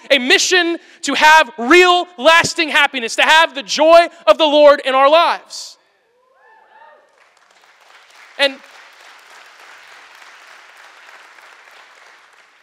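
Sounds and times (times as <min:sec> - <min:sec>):
speech: 0:00.0 - 0:05.8, 0:08.4 - 0:08.7
audience applause: 0:07.1 - 0:12.6.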